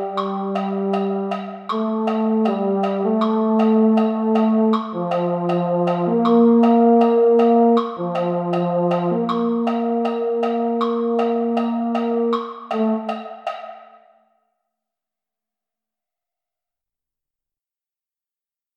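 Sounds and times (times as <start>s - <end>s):
baritone: 0.0s - 13.3s.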